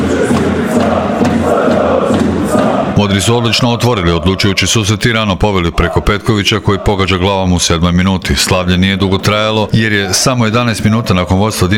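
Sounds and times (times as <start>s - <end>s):
football fans chanting at a Champions League match: 0.0s - 7.8s
speech: 3.1s - 11.7s.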